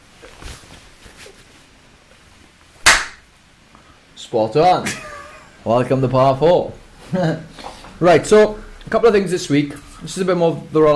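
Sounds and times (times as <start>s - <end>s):
single hand clap: 2.8s - 3.2s
speech: 4.3s - 10.9s
laughter: 4.8s - 5.6s.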